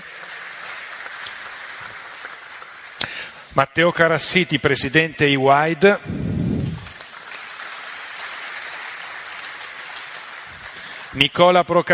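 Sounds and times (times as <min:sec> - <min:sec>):
audience applause: 0:00.0 - 0:03.4, 0:06.2 - 0:11.9
speech: 0:03.0 - 0:06.2, 0:11.2 - 0:11.9.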